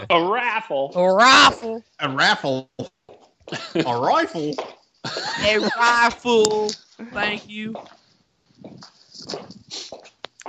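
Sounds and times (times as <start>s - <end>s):
speech: 0.0s - 8.0s
laughter: 3.5s - 4.3s, 5.0s - 6.2s
footsteps on new wooden floors in an office entryway: 7.2s - 10.4s.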